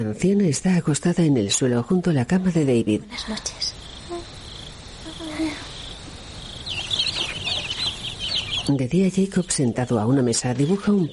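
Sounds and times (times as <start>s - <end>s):
speech: 0.0s - 3.8s, 8.7s - 11.1s
steady high chirring of insects: 1.5s - 11.1s
chicken clucking as hands take it out of a wooden box: 6.6s - 8.7s.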